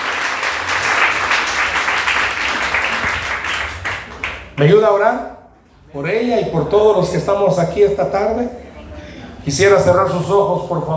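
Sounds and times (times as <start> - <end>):
audience applause: 0.0 - 4.5
speech: 4.6 - 5.3, 5.9 - 8.6, 9.4 - 10.9.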